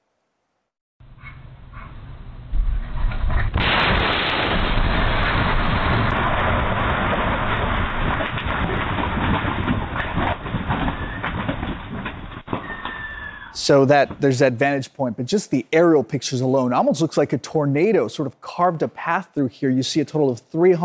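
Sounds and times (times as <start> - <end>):
gas explosion recorded by doorbell camera: 1.5 - 14.3
speech: 13.6 - 20.8.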